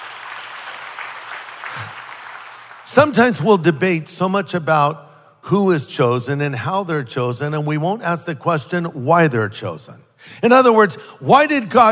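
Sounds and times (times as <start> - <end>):
applause from a church congregation during a sermon: 0.0 - 3.1
speech: 2.9 - 11.9.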